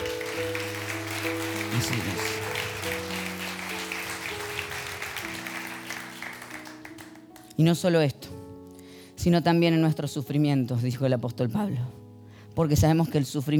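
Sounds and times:
crowd applauding: 0.0 - 7.5
speech: 1.8 - 2.3, 7.6 - 8.2, 9.2 - 12.0, 12.6 - 13.5.

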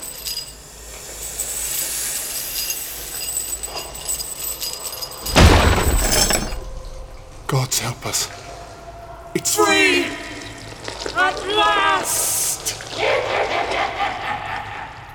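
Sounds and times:
massive serpent tail smashing ancient stone walls: 5.2 - 7.3
speech: 7.5 - 8.4, 9.3 - 10.3, 11.2 - 12.3
laughter: 12.6 - 15.1.

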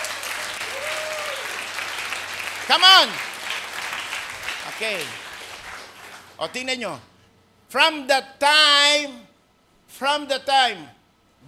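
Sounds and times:
church congregation clapping during a service: 0.0 - 6.8
speech: 2.7 - 3.3, 4.8 - 5.2, 6.4 - 7.1, 7.7 - 9.3, 9.9 - 11.0.

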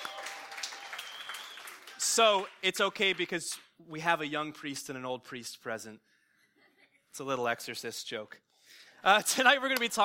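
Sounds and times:
audience applause: 0.0 - 3.3
speech: 2.2 - 6.1, 7.2 - 10.0.

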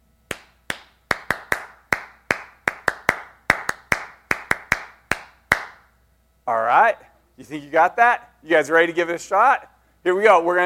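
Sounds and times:
person clapping out a rhythmic unity clap pattern: 0.3 - 5.9
speech: 6.5 - 10.6.

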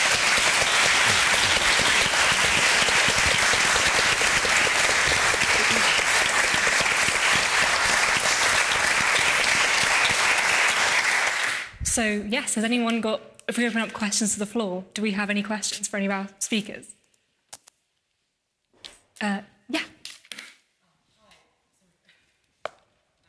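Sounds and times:
audience applause: 0.0 - 11.8
speech: 12.0 - 17.0, 19.2 - 19.9.

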